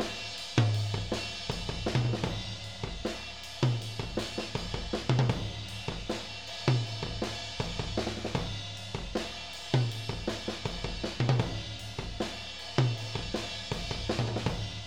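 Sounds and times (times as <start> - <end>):
tom drums: 0.0 - 14.8.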